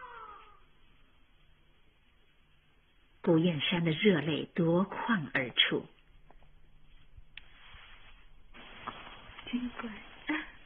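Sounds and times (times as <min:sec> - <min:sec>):
newborn baby crying: 0:00.0 - 0:00.7
speech: 0:03.3 - 0:06.0, 0:09.5 - 0:10.1.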